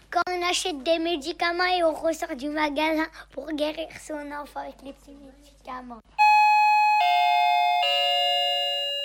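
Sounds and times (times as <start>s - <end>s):
speech: 0.5s - 6.2s
shop door entry chime in three descending electronic tones: 6.2s - 9.0s.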